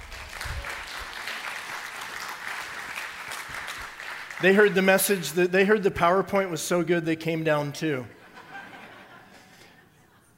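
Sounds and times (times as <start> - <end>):
people clapping: 0.0 - 5.4
speech: 4.4 - 8.2
laughter: 8.1 - 10.3.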